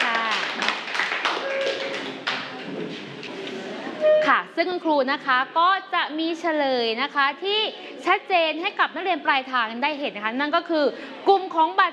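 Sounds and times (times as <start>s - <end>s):
group of students clapping: 0.0s - 2.7s
speech: 4.6s - 11.9s.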